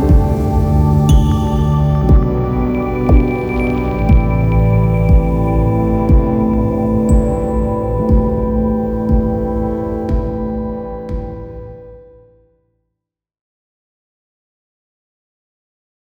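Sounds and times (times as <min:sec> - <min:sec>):
ambient music: 0:00.0 - 0:12.4.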